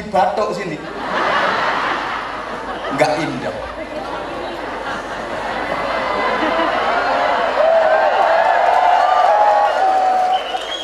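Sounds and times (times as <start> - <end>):
speech: 0.1 - 1.2, 2.9 - 4.3
laughter: 0.8 - 7.8
crowd clapping: 6.0 - 10.8
cheer or whistle: 8.8 - 10.8.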